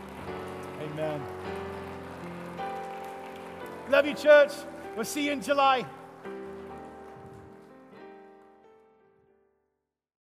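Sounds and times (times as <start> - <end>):
audience applauding: 0.0 - 7.8
sustained keyboard chords: 0.0 - 8.6
speech: 1.0 - 1.6, 3.9 - 6.0.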